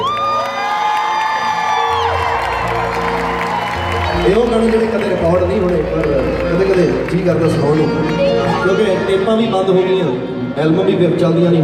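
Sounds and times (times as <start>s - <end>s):
high shouts from a concert crowd: 0.0s - 6.0s
audience cheering and whooping at a live concert: 0.0s - 8.0s
audience clapping at a live concert: 0.0s - 8.9s
speech: 4.3s - 11.6s.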